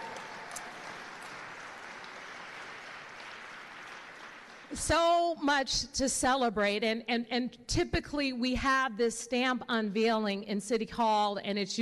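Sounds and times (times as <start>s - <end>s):
audience clapping: 0.0s - 5.0s
speech: 4.7s - 11.8s.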